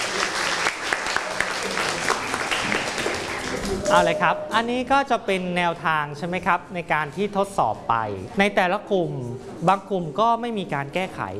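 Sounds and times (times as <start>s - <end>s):
people clapping: 0.0s - 4.1s
speech: 3.9s - 11.3s.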